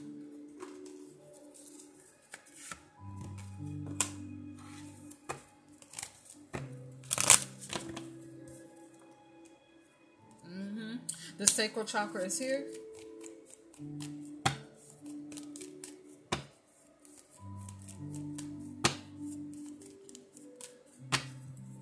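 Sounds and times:
cards being shuffled: 0:00.5 - 0:08.6, 0:12.6 - 0:21.8
speech: 0:11.4 - 0:12.8.

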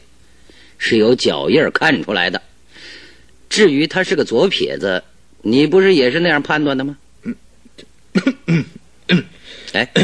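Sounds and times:
speech: 0:00.8 - 0:02.5, 0:03.5 - 0:07.4, 0:08.2 - 0:10.0
person coughing: 0:08.2 - 0:10.0.

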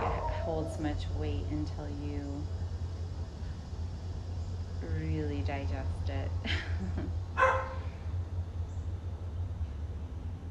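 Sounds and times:
neighbour's dog barking: 0:00.0 - 0:00.7, 0:07.4 - 0:07.8
faint steady low rumble: 0:00.0 - 0:10.4
speech: 0:00.5 - 0:02.7, 0:04.8 - 0:07.5.

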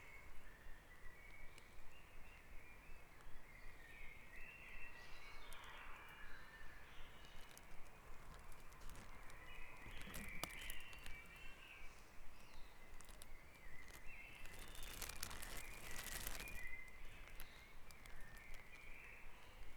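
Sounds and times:
birds in a dawn chorus: 0:00.0 - 0:19.7
bursts of crackling noise: 0:07.0 - 0:11.5, 0:12.3 - 0:19.0.

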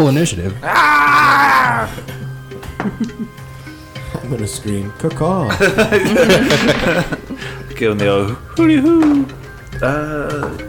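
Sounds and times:
speech: 0:00.0 - 0:02.2, 0:02.8 - 0:03.5, 0:04.2 - 0:10.6
person imitating a growl: 0:00.6 - 0:02.0
laughter: 0:02.8 - 0:03.4, 0:05.5 - 0:07.6.

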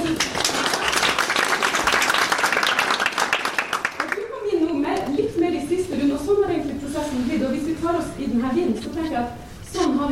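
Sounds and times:
crowd applause: 0:00.0 - 0:04.2
person speaking: 0:04.2 - 0:10.1.

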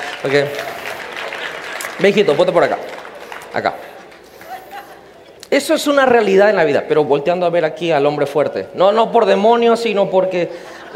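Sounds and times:
audience applause: 0:00.0 - 0:05.2
speech: 0:00.2 - 0:00.7, 0:02.0 - 0:02.9, 0:03.5 - 0:03.9, 0:05.5 - 0:10.9.

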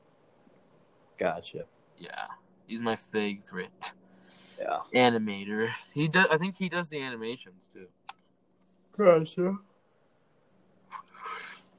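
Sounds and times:
speech: 0:01.2 - 0:04.0, 0:04.6 - 0:08.0, 0:09.0 - 0:09.7
yawn: 0:10.9 - 0:11.6.

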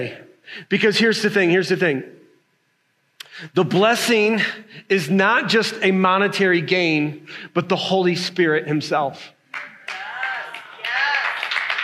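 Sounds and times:
speech: 0:00.0 - 0:02.2, 0:03.4 - 0:09.7
audience clapping: 0:09.5 - 0:11.8.

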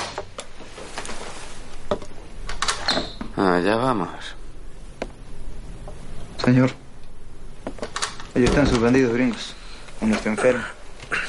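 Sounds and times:
door opening: 0:02.4 - 0:03.4, 0:07.6 - 0:09.4
speech: 0:02.9 - 0:04.4, 0:06.5 - 0:06.8, 0:08.4 - 0:10.8.

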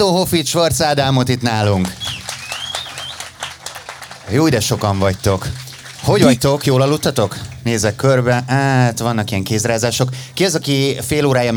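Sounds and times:
speech: 0:00.0 - 0:02.2, 0:04.3 - 0:11.5
live audience applause: 0:01.3 - 0:07.7
high whistle: 0:01.8 - 0:03.8.

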